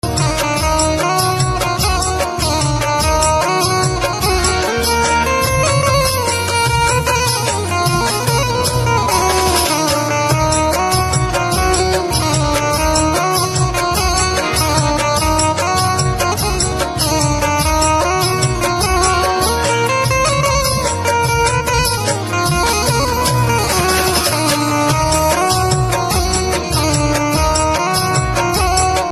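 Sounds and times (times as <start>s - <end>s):
banjo: 0.0s - 29.1s.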